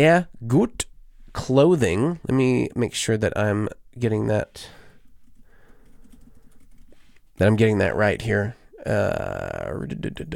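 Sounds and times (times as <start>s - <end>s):
speech: 0.0s - 4.8s, 7.4s - 10.3s
typing on a computer keyboard: 5.2s - 7.0s.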